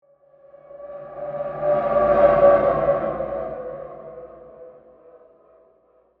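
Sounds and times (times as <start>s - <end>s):
ghostly howling whoosh passing by: 0.5s - 5.0s.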